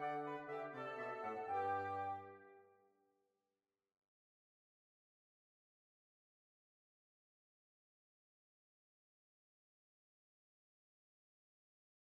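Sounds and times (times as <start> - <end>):
quick march played by a big band: 0.0 - 2.5.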